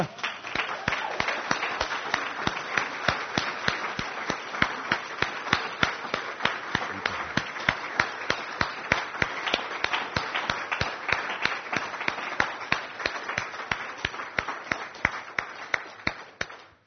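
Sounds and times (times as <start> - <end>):
audience applause: 0.0 - 16.8.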